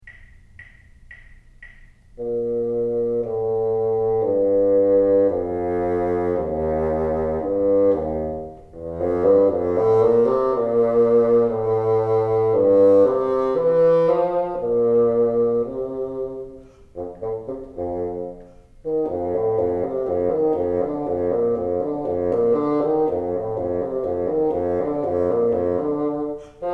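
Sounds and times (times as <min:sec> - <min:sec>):
bassoon: 0:02.2 - 0:26.7.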